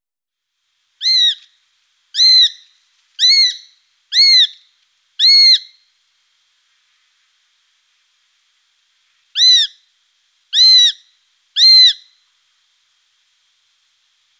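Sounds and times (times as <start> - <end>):
Eurasian sparrowhawk sharp calls: 1.0 - 1.6, 2.2 - 4.6, 5.2 - 5.8, 9.4 - 9.8, 10.6 - 12.2.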